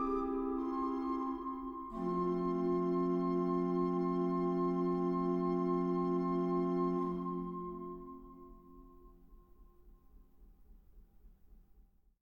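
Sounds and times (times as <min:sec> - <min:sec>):
organ playing a recitative: 0:00.0 - 0:08.6.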